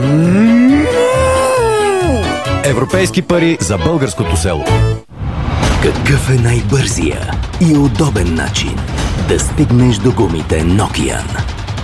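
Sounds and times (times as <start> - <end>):
cow mooing on a dairy farm: 0.0 - 2.6
speech: 2.8 - 5.0, 5.8 - 11.6.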